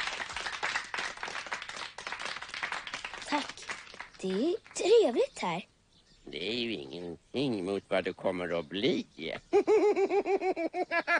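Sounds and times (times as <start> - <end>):
applause: 0.0 - 4.8
speech: 3.3 - 3.6, 4.2 - 5.7, 6.3 - 11.1.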